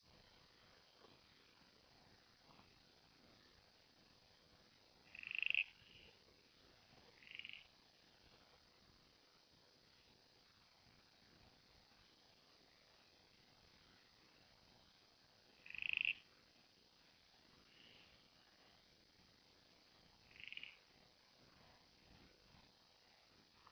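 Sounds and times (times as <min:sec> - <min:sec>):
steady low hiss: 0:00.0 - 0:23.7
copper-backed broodfrog croaks: 0:05.0 - 0:06.2, 0:07.2 - 0:07.7, 0:15.5 - 0:16.3, 0:20.2 - 0:21.0.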